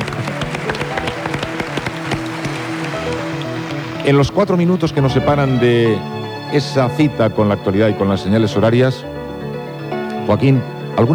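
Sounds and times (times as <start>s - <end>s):
studio audience clapping at a radio anniversary celebration: 0.0s - 6.0s
speech: 4.0s - 9.2s, 10.3s - 11.1s.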